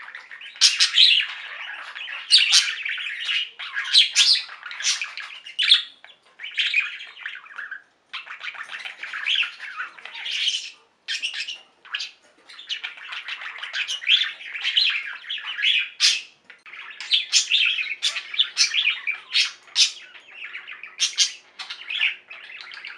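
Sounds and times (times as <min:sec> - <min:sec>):
budgerigar chattering: 0:00.0 - 0:22.9.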